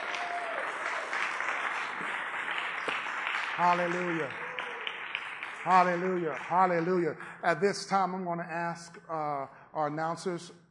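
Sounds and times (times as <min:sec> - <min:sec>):
audience hand clapping in praise: 0:00.0 - 0:07.5
speech: 0:03.6 - 0:04.4, 0:05.6 - 0:10.6.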